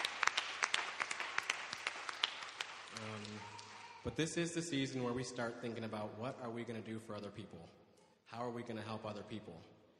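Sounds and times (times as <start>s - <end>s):
audience applause: 0.0s - 4.0s
speech: 4.0s - 9.8s.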